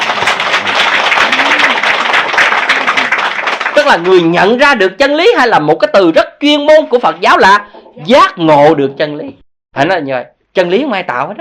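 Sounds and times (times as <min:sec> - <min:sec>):
audience applause: 0:00.0 - 0:04.3
speech: 0:03.9 - 0:11.3.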